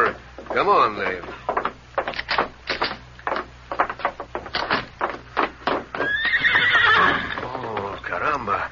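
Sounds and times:
horse hooves clopping: 0.0 - 8.6
speech: 0.6 - 1.4
horse neighing: 6.0 - 8.0.

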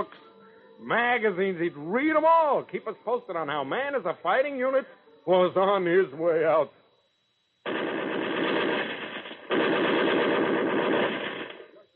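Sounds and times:
speech: 0.8 - 6.8
machine gun firing at targets: 7.6 - 11.8.

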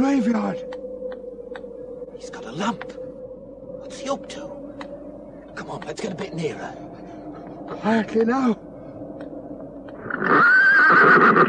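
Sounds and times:
speech: 0.0 - 0.8, 2.2 - 3.0, 3.9 - 4.6, 5.6 - 6.9, 7.7 - 8.6
pony whinnying in a graveyard: 10.0 - 11.4.

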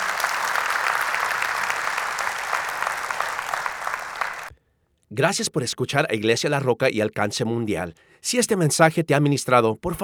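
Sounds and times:
audience applause: 0.0 - 4.5
speech: 5.1 - 10.0.

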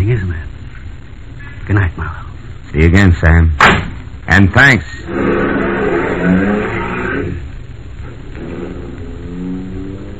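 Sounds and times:
speech: 1.7 - 5.4
car engine revving as car pulls away: 5.0 - 10.1.

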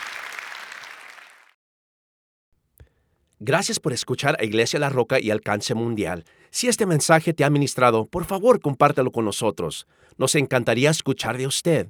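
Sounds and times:
audience applauding: 0.0 - 1.6
speech: 3.4 - 11.8.

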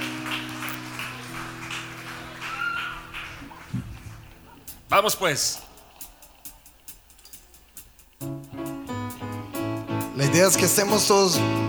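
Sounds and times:
crowd clapping: 0.0 - 9.4
low constant hum: 0.6 - 9.8
speech: 4.9 - 5.6, 10.4 - 11.6.

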